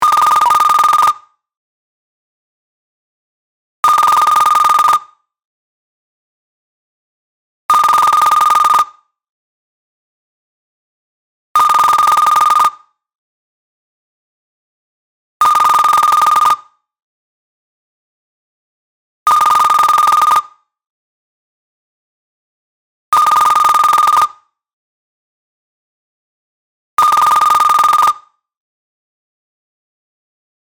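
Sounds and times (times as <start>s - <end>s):
ringtone: 0.0s - 1.4s, 3.9s - 5.2s, 7.7s - 9.1s, 11.6s - 13.0s, 15.4s - 16.8s, 19.3s - 20.6s, 23.2s - 24.6s, 27.0s - 28.4s.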